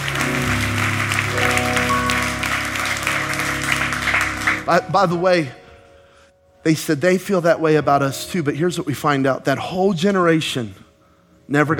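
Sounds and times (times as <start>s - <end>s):
audience clapping: 0.0s - 5.2s
sustained low keyboard chords: 0.0s - 10.4s
speech: 4.7s - 5.6s, 6.6s - 10.8s, 11.5s - 11.7s.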